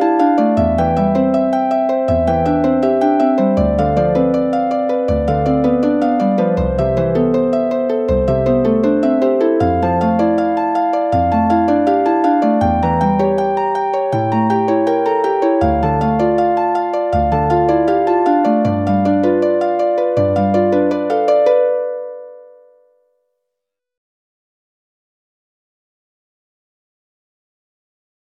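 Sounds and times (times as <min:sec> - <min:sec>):
backing track in C major: 0:00.0 - 0:22.2.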